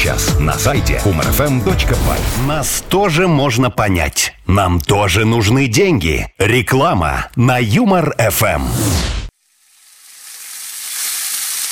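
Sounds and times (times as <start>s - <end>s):
speech: 0.2s - 9.1s
meat sizzling on a grill: 9.4s - 11.7s.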